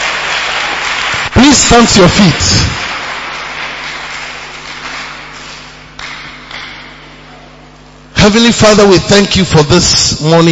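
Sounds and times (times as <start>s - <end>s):
audience clapping hands: 0.0s - 7.3s
speech: 1.5s - 2.9s, 8.2s - 10.5s.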